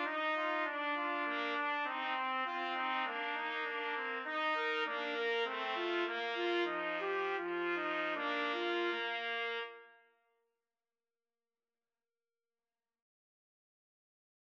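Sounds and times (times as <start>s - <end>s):
trumpet trio karaoke melody: 0.0s - 10.1s.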